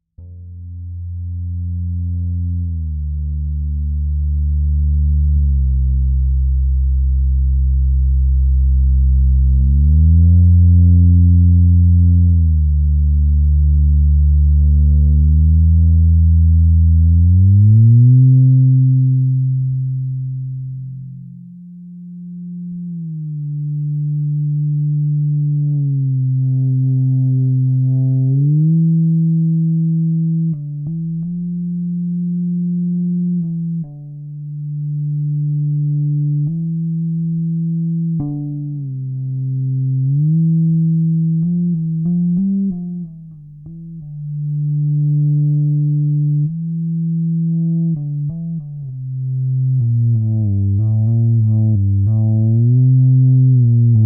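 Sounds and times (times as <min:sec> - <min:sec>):
fretless bass played with an EBow: 0:00.0 - 0:54.0.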